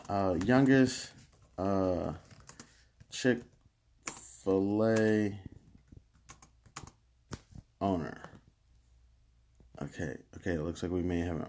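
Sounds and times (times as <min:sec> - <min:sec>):
computer keyboard typing a search: 0:00.0 - 0:07.0
speech: 0:00.1 - 0:02.2, 0:03.1 - 0:03.5, 0:04.4 - 0:05.5, 0:07.8 - 0:08.3, 0:09.8 - 0:11.4.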